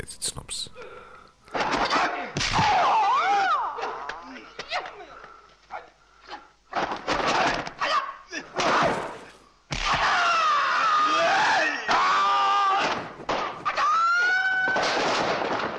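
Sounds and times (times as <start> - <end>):
film character battle cries during hand-to-hand combat: 1.8 - 5.1, 7.2 - 15.7.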